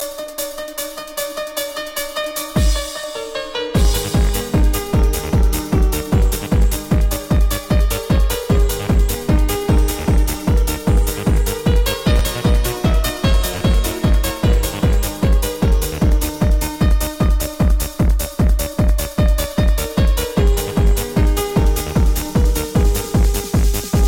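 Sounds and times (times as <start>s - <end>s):
techno remix of a classical piano piece: 0.0s - 24.0s.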